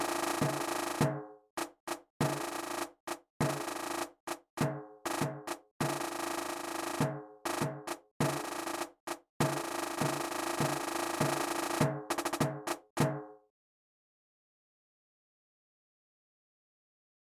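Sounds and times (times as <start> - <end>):
rhythm: 0.0 - 13.3.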